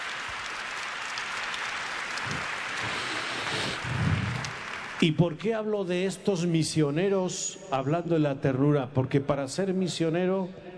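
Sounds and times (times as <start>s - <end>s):
audience applause: 0.0s - 5.3s
speech: 5.0s - 10.7s.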